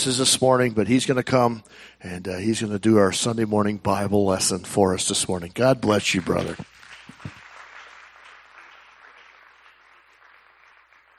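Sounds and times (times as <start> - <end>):
speech: 0.0 - 7.4
audience clapping hands: 5.9 - 11.1.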